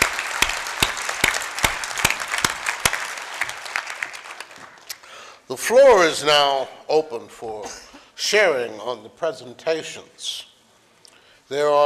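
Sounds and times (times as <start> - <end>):
audience applause: 0.0 - 4.9
speech: 5.5 - 10.5, 11.5 - 11.8.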